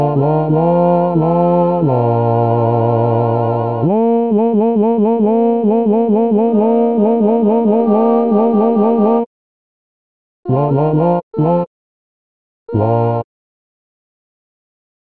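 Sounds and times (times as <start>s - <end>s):
bass: 0.0s - 9.3s, 10.5s - 11.7s, 12.7s - 13.3s.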